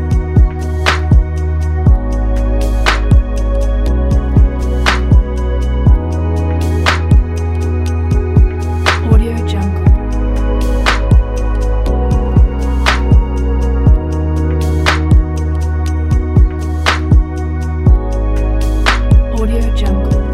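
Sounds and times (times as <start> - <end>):
dreamy lounge electronic music: 0.0 - 20.3.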